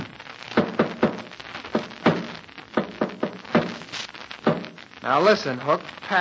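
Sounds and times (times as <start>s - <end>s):
Morse code tapping against a wall: 0.6s - 3.8s
speech: 5.0s - 6.2s.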